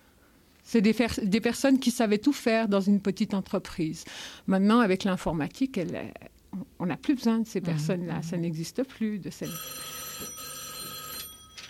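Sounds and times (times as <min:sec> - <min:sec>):
speech: 0:00.7 - 0:10.3
telephone bell ringing: 0:09.4 - 0:11.6.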